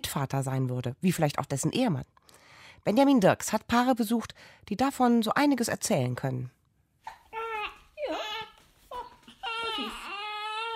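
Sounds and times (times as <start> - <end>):
speech: 0.1 - 2.2, 2.8 - 6.6
baby crying in high-pitched wavering wails: 7.1 - 10.7.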